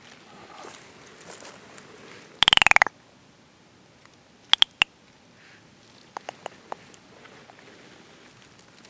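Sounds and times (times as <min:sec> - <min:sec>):
California giant salamander Dicamptodon ensatus rasping calls: 0:02.4 - 0:02.9, 0:04.6 - 0:04.9, 0:06.2 - 0:06.7.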